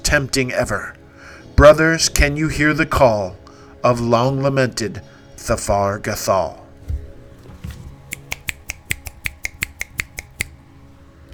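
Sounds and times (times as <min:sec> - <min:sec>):
speech: 0:00.1 - 0:01.0, 0:01.6 - 0:06.6
person snapping their own fingers: 0:08.1 - 0:10.6.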